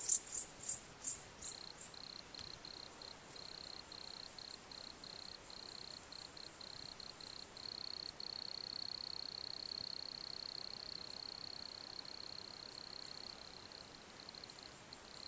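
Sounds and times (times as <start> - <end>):
cricket trilling: 0.0 - 8.3
constant background hiss: 0.0 - 15.2.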